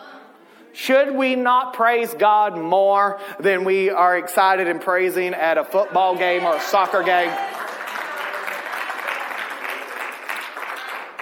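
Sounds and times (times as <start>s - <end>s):
speech: 0.8s - 7.6s
audience clapping: 6.2s - 11.1s.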